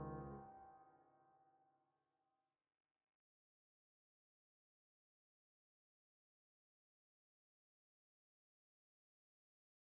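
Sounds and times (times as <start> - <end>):
piano in 17-tone equal temperament: 0.0 - 0.8.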